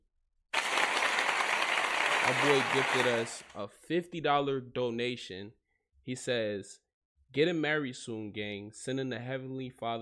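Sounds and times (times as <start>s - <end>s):
round of applause: 0.5s - 3.6s
speech: 2.3s - 10.0s.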